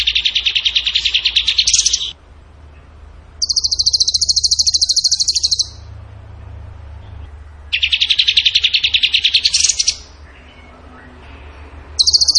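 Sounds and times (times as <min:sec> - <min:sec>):
bird buzzing and trilling: 0:00.0 - 0:02.2, 0:03.4 - 0:05.9, 0:07.7 - 0:10.2, 0:12.0 - 0:12.3.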